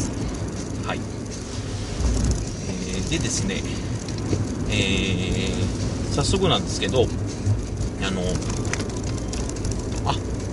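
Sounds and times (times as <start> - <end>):
car road and engine rumble while driving: 0.0 - 10.5
speech: 0.9 - 1.1, 3.1 - 3.9, 4.7 - 7.2, 8.0 - 8.7, 10.1 - 10.3.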